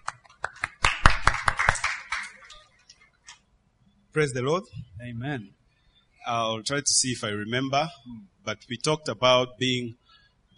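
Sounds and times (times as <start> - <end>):
small group applauding: 0.0 - 2.6
speech: 4.2 - 5.6, 6.3 - 10.0.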